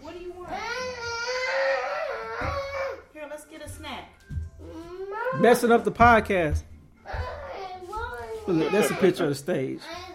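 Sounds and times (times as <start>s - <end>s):
toddler crying: 0.4s - 3.1s, 4.6s - 5.6s, 7.0s - 9.2s
speech: 5.4s - 6.7s, 8.5s - 10.0s.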